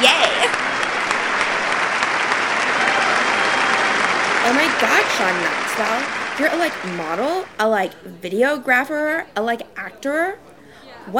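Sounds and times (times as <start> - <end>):
crowd applauding: 0.0 - 7.7
speech: 4.6 - 10.5.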